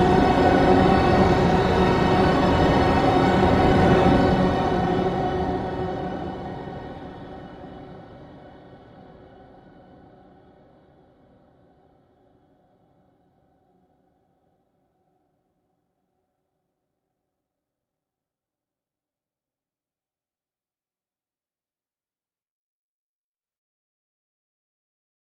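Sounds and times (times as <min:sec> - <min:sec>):
orchestral drone: 0:00.0 - 0:07.6.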